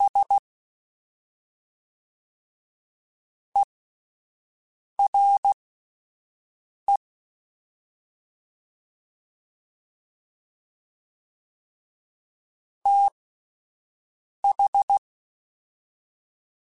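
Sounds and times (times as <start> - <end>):
fast CW Morse code groups: 0.0 - 0.4, 5.0 - 5.6, 12.9 - 13.1, 14.4 - 15.0.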